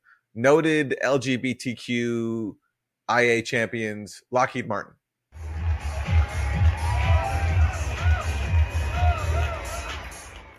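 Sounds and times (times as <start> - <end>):
speech: 0.4 - 5.0
pride parade crowd marching and cheering: 5.4 - 10.5
whoops and shouts: 5.9 - 10.4.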